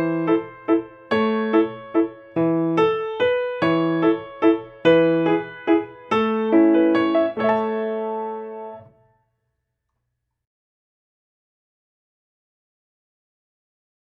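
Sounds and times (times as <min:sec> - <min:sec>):
cowboy waltz music at 144 bpm: 0:00.0 - 0:09.0.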